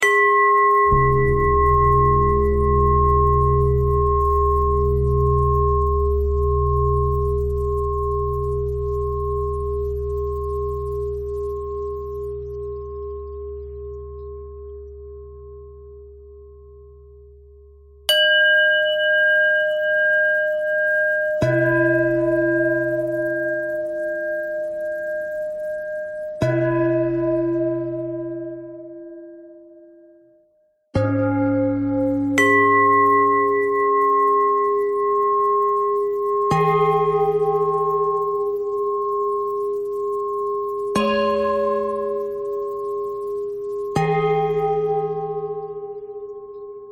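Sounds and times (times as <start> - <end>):
pentatonic bell melody: 0.0 - 14.8, 18.1 - 30.0, 31.0 - 46.9.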